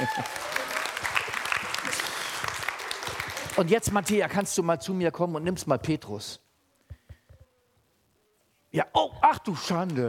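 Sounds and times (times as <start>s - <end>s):
group clapping: 0.0s - 4.6s
speech: 3.6s - 6.4s, 8.7s - 10.0s.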